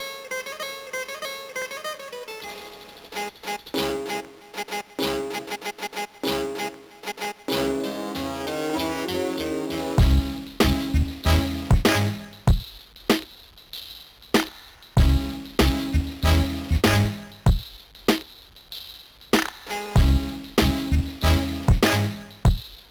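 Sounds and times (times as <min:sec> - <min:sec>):
background music: 0:00.0 - 0:12.6, 0:15.0 - 0:17.6, 0:19.7 - 0:22.6.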